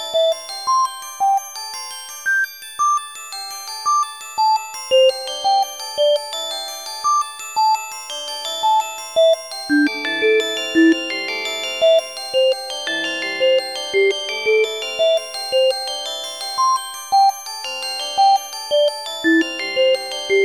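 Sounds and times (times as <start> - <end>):
glockenspiel: 0.0 - 20.4.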